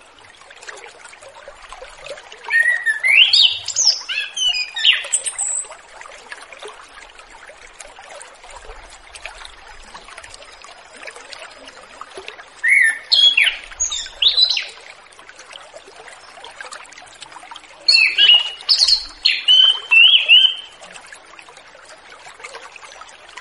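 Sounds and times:
orange-headed thrush singing repeated whistled notes: 0:02.5 - 0:05.6, 0:12.6 - 0:14.7, 0:17.9 - 0:20.8.

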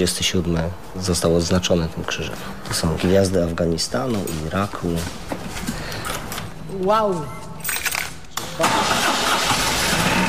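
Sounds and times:
speech: 0:00.0 - 0:05.3, 0:06.8 - 0:07.4
BMW motorcycle engine starting: 0:08.6 - 0:10.2.

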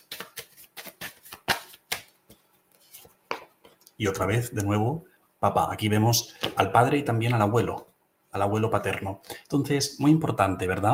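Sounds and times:
tarot cards being shuffled by hand: 0:00.0 - 0:03.8
speech: 0:04.0 - 0:10.9.

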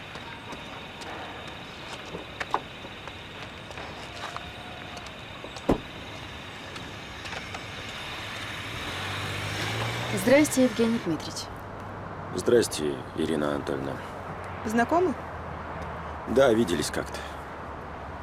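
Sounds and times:
car driving: 0:00.0 - 0:18.2
speech: 0:10.3 - 0:11.6, 0:12.4 - 0:15.2, 0:16.3 - 0:17.3.

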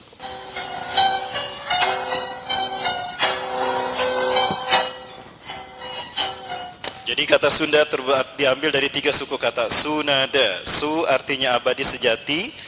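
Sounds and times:
gamelan music: 0:00.2 - 0:07.2
speech: 0:07.3 - 0:12.6.

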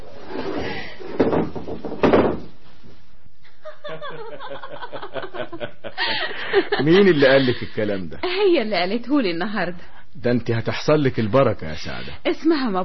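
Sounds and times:
door shut and locked from outside: 0:01.2 - 0:02.5
people chuckling: 0:03.4 - 0:08.3
speech: 0:06.0 - 0:12.8.

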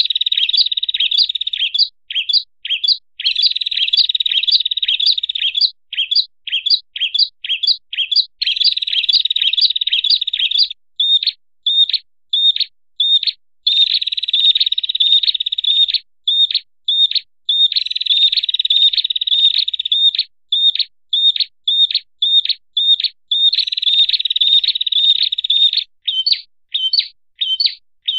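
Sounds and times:
songbird training song of short high chirped phrases: 0:00.0 - 0:28.1.

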